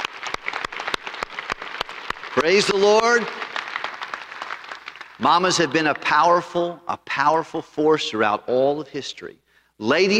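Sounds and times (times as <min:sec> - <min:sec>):
audience applause for standing mothers: 0:00.0 - 0:05.4
speech: 0:02.4 - 0:03.4, 0:05.2 - 0:10.1.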